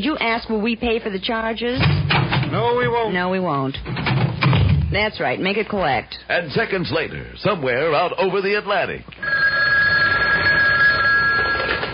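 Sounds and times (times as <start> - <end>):
speech: 0.0 - 9.4
telephone ringing with a steady trilling tone: 9.2 - 11.9.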